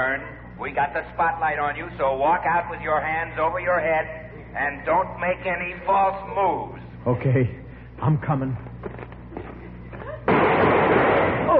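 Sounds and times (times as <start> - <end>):
speech: 0.0 - 9.0
gunshot sound effect in a radio drama: 10.3 - 11.5.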